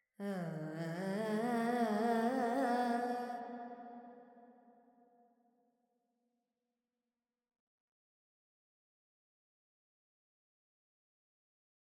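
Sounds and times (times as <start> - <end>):
Carnatic female vocal alap in Phrygian mode: 0.2 - 3.5.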